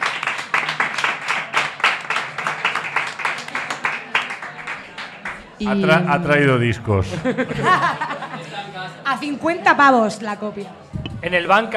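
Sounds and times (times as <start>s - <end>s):
audience applause: 0.0s - 6.4s
speech: 5.6s - 8.0s, 9.1s - 11.7s
laughter: 5.6s - 9.0s.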